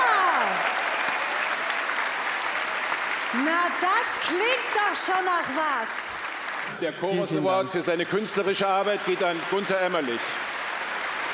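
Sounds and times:
faint voices or cheers: 0.0s - 4.0s
audience applause in concert hall: 0.0s - 11.3s
speech: 3.3s - 6.0s, 6.7s - 10.4s.

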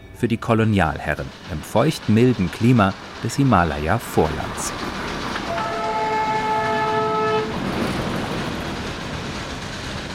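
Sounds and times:
steam train on Himalayan mountain railway: 0.1s - 10.1s
speech: 0.2s - 5.0s
steam train whistle blast: 5.5s - 7.5s.

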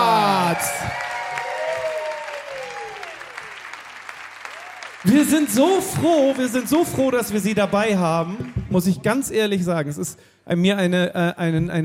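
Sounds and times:
audience applause: 0.0s - 8.9s
speech: 5.0s - 11.8s.

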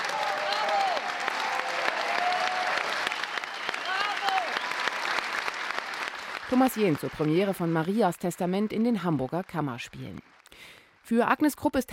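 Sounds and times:
long warm audience applause: 0.0s - 11.1s
faint voices and whistles: 3.0s - 4.8s
speech: 6.5s - 11.9s.

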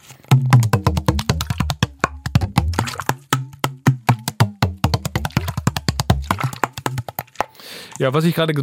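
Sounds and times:
water bottle being handled and played: 0.0s - 8.1s
speech: 8.0s - 8.6s.

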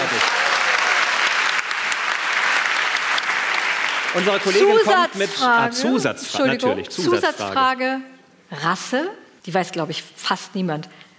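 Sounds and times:
audience applause: 0.0s - 5.4s
speech: 4.2s - 11.0s.

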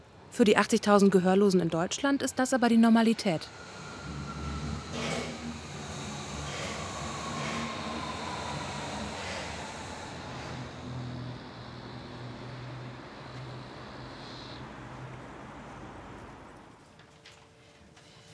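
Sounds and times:
speech: 0.4s - 3.8s
train starting to pull away: 2.6s - 16.8s.

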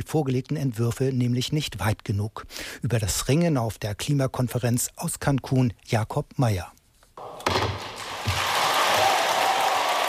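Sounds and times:
speech: 0.0s - 7.4s
gavel banging: 7.2s - 8.4s
applause: 7.8s - 10.0s.

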